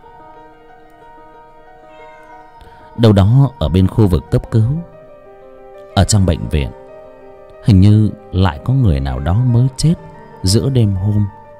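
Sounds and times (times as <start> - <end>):
stray cat meowing mournfully outside at night: 1.6 - 2.9
speech: 3.0 - 4.9, 6.0 - 6.8, 7.6 - 11.4.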